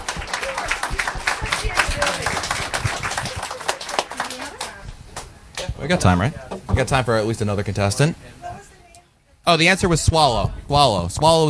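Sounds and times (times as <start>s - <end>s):
round of applause: 0.0s - 5.7s
speech: 5.9s - 8.4s, 9.5s - 11.4s.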